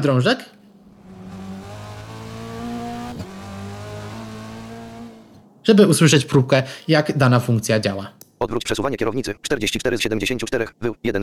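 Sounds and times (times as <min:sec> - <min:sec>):
speech: 0:00.0 - 0:00.6, 0:05.6 - 0:11.2
video game car engine drone panning across the stereo field: 0:00.6 - 0:05.6.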